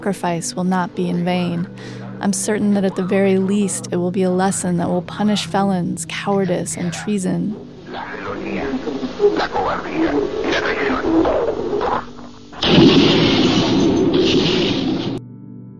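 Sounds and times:
speech: 0.0 - 13.0
explosions in archival radio broadcast: 12.6 - 15.2.

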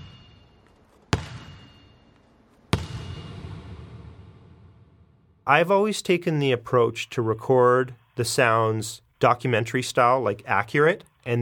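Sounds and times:
ball slammed on ground: 0.0 - 2.0, 2.6 - 5.3
ball ping under microphone: 0.0 - 5.0
speech: 5.5 - 11.4.

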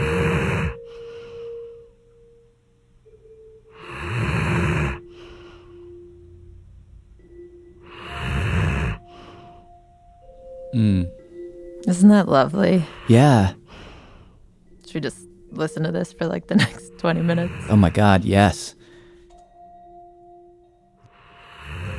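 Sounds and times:
dogs breathing heavily and snoring: 0.0 - 1.9, 3.7 - 6.1, 7.7 - 9.8, 17.2 - 18.1, 21.1 - 21.9
speech: 11.9 - 13.6, 14.9 - 18.8.

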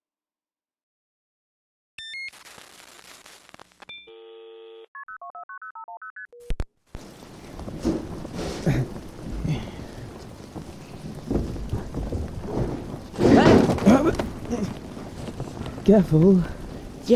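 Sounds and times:
distant thunder rumbling: 7.0 - 17.1
steady rain: 7.0 - 17.1
speech: 8.6 - 9.0, 15.9 - 17.1.

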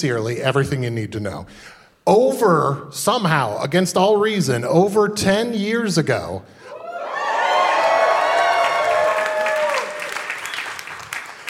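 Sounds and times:
speech: 0.0 - 6.7
live audience cheering and whooping: 6.7 - 11.4
live audience clapping: 7.3 - 11.4.

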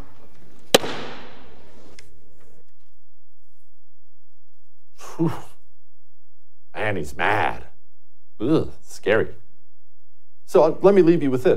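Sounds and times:
gavel banging to recess the House: 0.7 - 1.5
speech: 5.2 - 5.5, 6.9 - 7.7, 8.4 - 9.4, 10.5 - 11.5.

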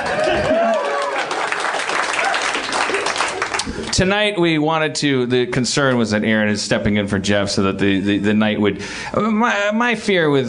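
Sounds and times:
audience applause: 0.0 - 3.9
speech: 4.0 - 10.4.

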